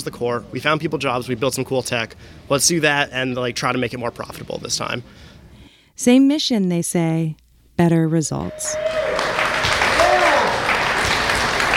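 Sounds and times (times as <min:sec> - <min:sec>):
speech: 0:00.0 - 0:05.3, 0:06.0 - 0:09.0
sustained crowd applause: 0:08.8 - 0:11.7.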